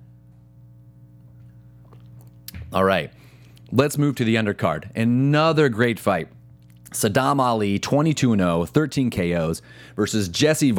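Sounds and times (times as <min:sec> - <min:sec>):
steady low electrical hum: 0:00.0 - 0:10.7
person sipping and swallowing water: 0:01.4 - 0:02.7, 0:06.5 - 0:07.0
speech: 0:02.7 - 0:10.7.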